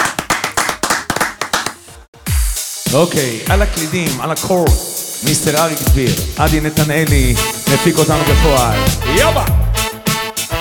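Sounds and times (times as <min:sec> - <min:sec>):
crowd clapping in rhythm on a music show: 0:00.0 - 0:02.1
speech: 0:02.9 - 0:09.6.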